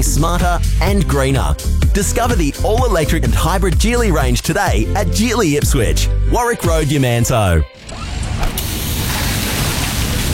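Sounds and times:
speech: 0.2 - 7.9
hydraulic hose bursting with a hissing rush: 8.6 - 10.3.

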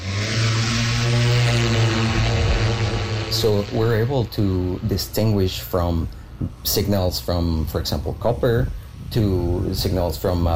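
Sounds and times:
survey plane engine roaring as it readies for takeoff: 0.0 - 6.6
steady low hum: 0.0 - 10.5
speech: 3.4 - 10.5.

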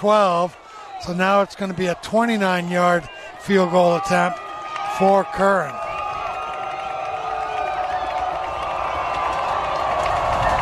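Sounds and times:
speech: 0.0 - 4.4, 5.0 - 5.8
football crowd cheering: 0.0 - 10.6
whoops: 5.6 - 10.6.

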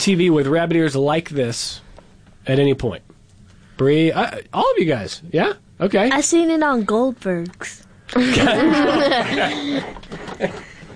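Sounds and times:
speech: 0.0 - 1.8, 2.4 - 3.1, 3.8 - 10.7
person laughing: 8.2 - 10.9.

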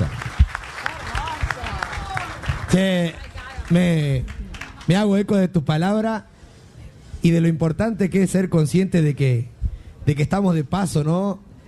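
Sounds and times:
audience applause: 0.0 - 5.0
speech: 2.7 - 6.3, 7.2 - 11.5.

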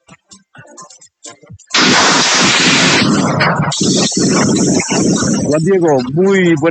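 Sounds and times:
bursts of gunfire after a clash between armed groups in Guaviare, Colombia: 1.7 - 6.0
speech: 4.3 - 6.6.

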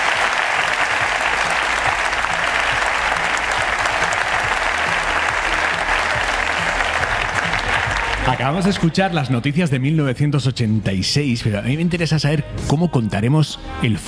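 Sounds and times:
audience applause: 0.0 - 9.2
speech: 8.3 - 14.0.

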